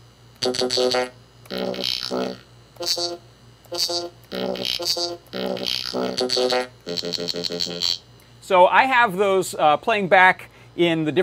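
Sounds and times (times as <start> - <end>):
steady low hum: 0.0 - 11.2
buzzy robotic formant-shifted synthesized voice-like bursts from a synthesizer: 0.4 - 8.0
speech: 0.4 - 11.2.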